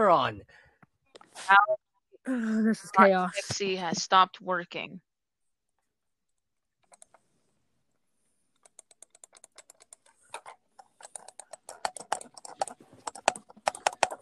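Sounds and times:
speech: 0.0 - 0.6, 1.4 - 5.1
computer keyboard typing: 6.8 - 7.2, 8.6 - 14.2.

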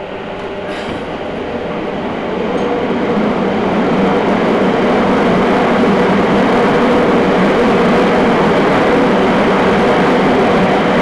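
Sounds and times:
Nagoya Municipal Subway Sakura-dori Line train rumbling: 0.0 - 11.0.

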